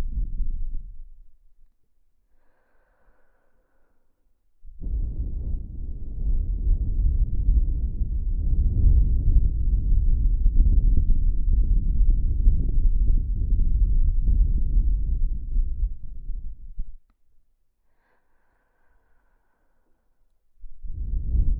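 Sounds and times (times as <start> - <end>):
wind blowing past the ear: 4.7 - 16.7, 20.8 - 21.5.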